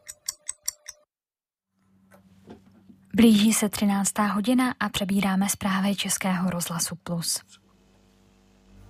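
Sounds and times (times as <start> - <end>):
radio time signal clock ticks: 0.0 - 1.0
speech: 3.2 - 7.6.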